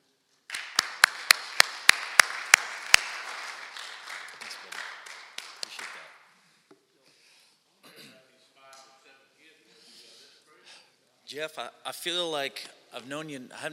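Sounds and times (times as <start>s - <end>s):
audience applause welcoming a speaker: 0.5s - 6.2s
speech: 11.3s - 13.7s.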